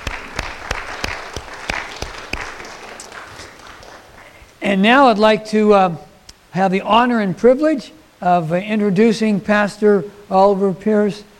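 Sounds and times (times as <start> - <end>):
audience applause: 0.0 - 4.4
speech: 4.7 - 11.3.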